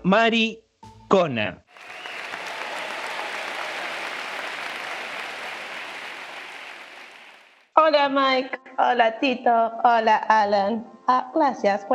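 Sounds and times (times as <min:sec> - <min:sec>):
speech: 0:00.1 - 0:01.6, 0:07.9 - 0:11.9
crowd applauding: 0:01.7 - 0:07.7.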